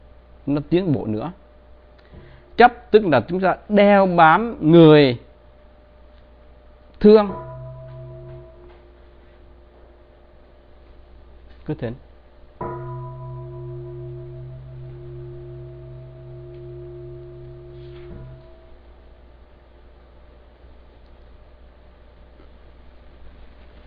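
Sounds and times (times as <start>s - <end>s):
speech: 0.5s - 1.4s, 2.6s - 5.3s, 7.0s - 7.4s, 11.7s - 12.0s
temple bell being struck: 7.0s - 10.0s, 12.6s - 19.0s.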